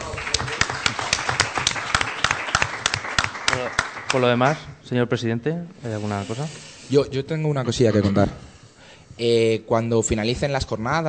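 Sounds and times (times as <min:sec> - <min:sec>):
audience applause: 0:00.0 - 0:04.6
speech: 0:04.1 - 0:08.5, 0:09.2 - 0:11.0.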